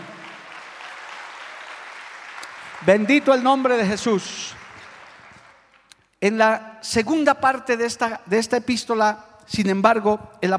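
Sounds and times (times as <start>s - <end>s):
audience applause: 0.0s - 5.9s
speech: 2.8s - 4.6s, 6.2s - 10.5s.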